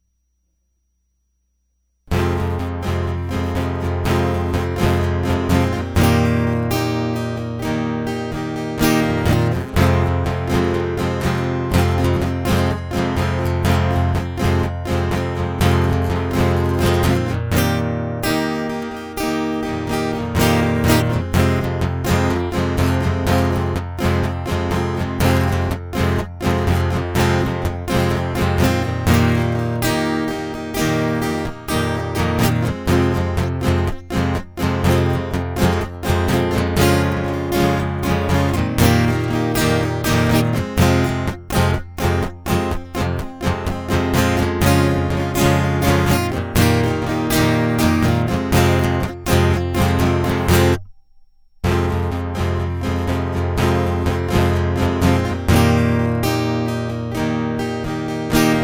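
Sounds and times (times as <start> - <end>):
guitar loop: 2.1 - 58.6.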